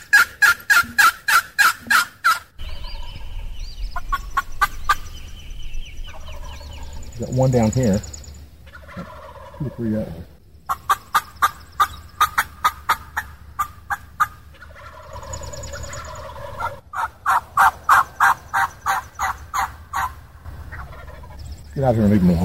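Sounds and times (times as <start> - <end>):
wild turkey gobblers gobbling: 0.0 - 5.4, 6.0 - 22.4
speech: 7.2 - 8.2, 9.6 - 10.4, 21.8 - 22.4.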